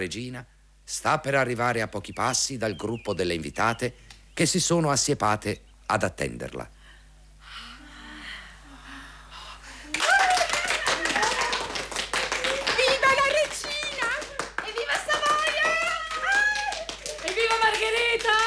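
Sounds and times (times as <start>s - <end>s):
speech: 0.0s - 6.8s
irrepressible applause: 9.9s - 18.4s.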